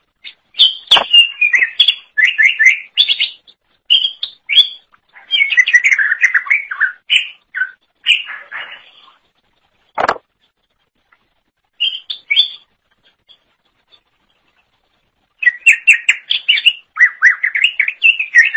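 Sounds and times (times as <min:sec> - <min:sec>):
greater green leafbird chattering and whistled song: 0:00.2 - 0:09.1, 0:11.8 - 0:12.7, 0:15.4 - 0:18.5.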